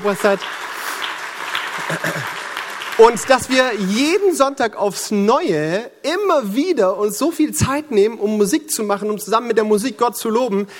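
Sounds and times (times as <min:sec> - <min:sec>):
speech: 0:00.0 - 0:00.8, 0:01.8 - 0:02.4, 0:03.0 - 0:10.7
audience applause: 0:00.0 - 0:03.9.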